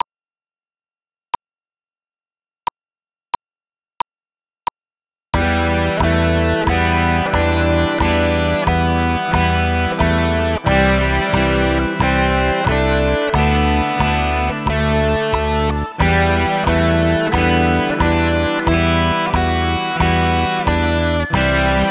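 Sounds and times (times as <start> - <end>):
guitar: 5.4 - 21.8.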